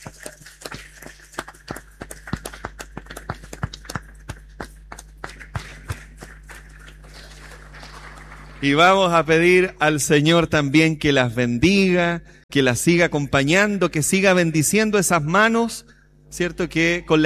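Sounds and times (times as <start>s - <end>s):
small audience applauding: 0.0s - 9.2s
low steady hum: 0.0s - 17.2s
speech: 8.6s - 17.2s.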